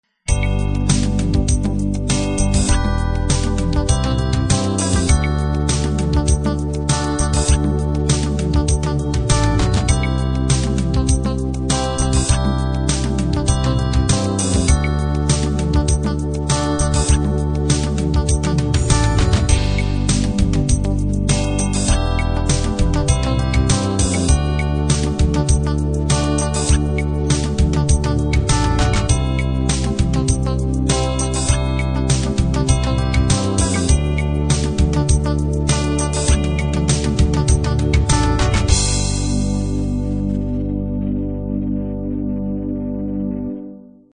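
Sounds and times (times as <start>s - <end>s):
pop ballad: 0.3s - 43.8s.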